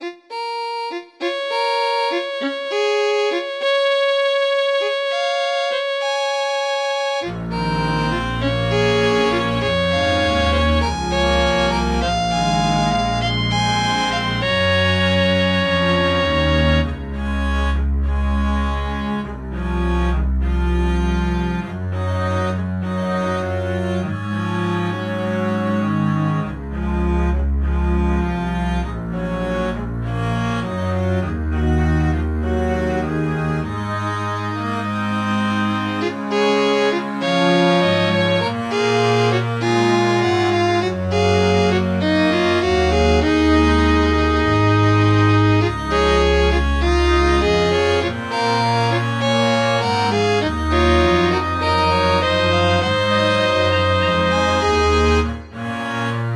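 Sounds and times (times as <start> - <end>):
quartet or quintet playing: 0.0 - 56.3.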